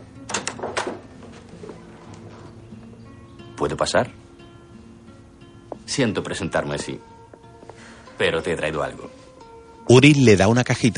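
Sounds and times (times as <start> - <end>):
door opening: 0.3 - 2.6
speech: 3.6 - 4.2, 6.0 - 7.2, 8.2 - 10.9.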